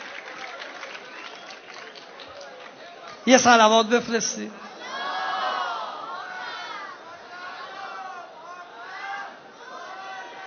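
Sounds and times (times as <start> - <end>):
clapping: 0.0 - 3.2
speech: 3.2 - 4.7
crowd cheering and shouting: 4.6 - 10.4.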